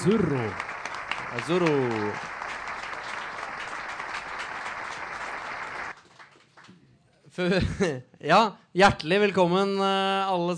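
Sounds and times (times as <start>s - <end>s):
speech: 0.0s - 0.7s, 1.3s - 2.4s, 7.4s - 10.5s
applause: 0.0s - 7.0s
laughter: 7.5s - 8.0s.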